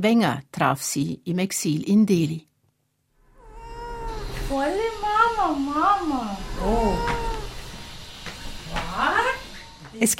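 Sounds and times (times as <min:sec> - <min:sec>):
speech: 0:00.0 - 0:02.5, 0:04.5 - 0:07.2, 0:10.0 - 0:10.1
pet cat Ninu meowing: 0:03.3 - 0:05.4, 0:06.0 - 0:08.0.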